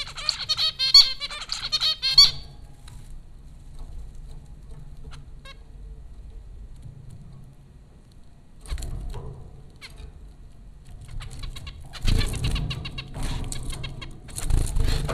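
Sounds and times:
zebra finches chattering at Popcorn School in Brooklyn: 0.0s - 2.7s, 11.0s - 15.0s.

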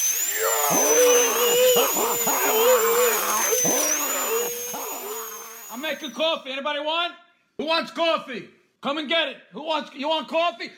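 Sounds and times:
high whine of a dental drill: 0.0s - 6.4s
speech: 5.8s - 10.7s.

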